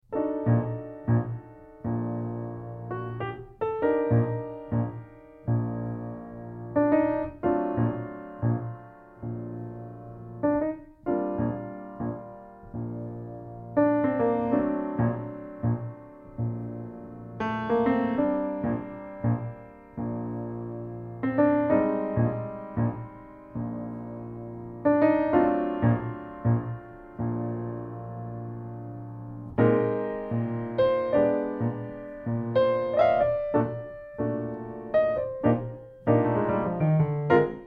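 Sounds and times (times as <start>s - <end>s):
solo piano: 0.0s - 37.6s.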